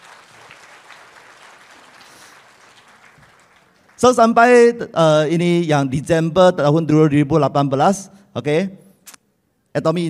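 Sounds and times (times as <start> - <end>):
audience applause: 0.0 - 4.1
speech: 4.0 - 8.8, 9.8 - 10.0.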